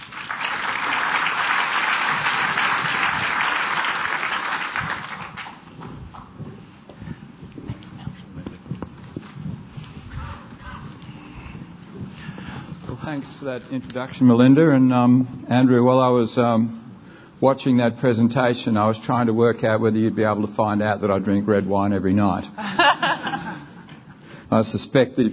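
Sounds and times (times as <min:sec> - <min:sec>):
audience applause welcoming economist Bill Evans: 0:00.0 - 0:05.8
speech: 0:13.2 - 0:16.8, 0:17.4 - 0:22.7, 0:24.5 - 0:25.3
laughter: 0:22.6 - 0:24.2.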